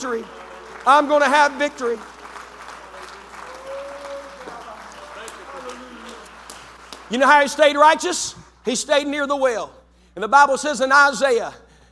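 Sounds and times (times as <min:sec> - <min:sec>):
speech: 0:00.0 - 0:02.1, 0:07.1 - 0:11.6
crowd clapping in a large room: 0:00.0 - 0:08.6
raised shouts: 0:03.3 - 0:05.7.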